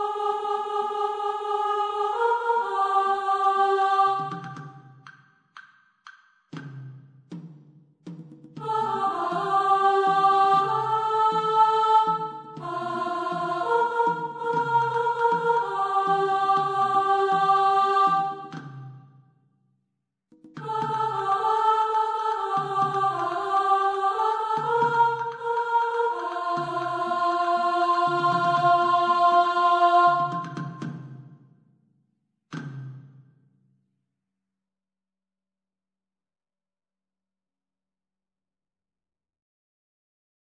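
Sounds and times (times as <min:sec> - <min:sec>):
soprano: 0:00.0 - 0:04.6, 0:08.6 - 0:18.6, 0:20.6 - 0:30.6.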